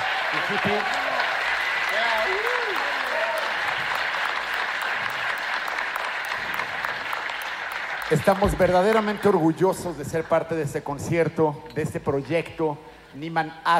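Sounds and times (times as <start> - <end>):
audience applause: 0.0 - 10.1
speech: 0.4 - 1.0, 8.1 - 13.7.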